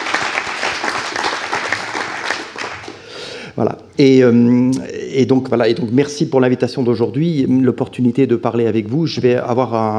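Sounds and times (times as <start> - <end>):
audience applause: 0.0 - 3.0
speech: 3.6 - 9.9.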